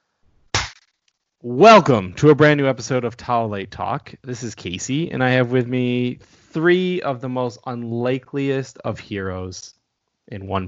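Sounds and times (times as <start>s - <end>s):
single hand clap: 0.6s - 0.8s
speech: 1.4s - 10.6s.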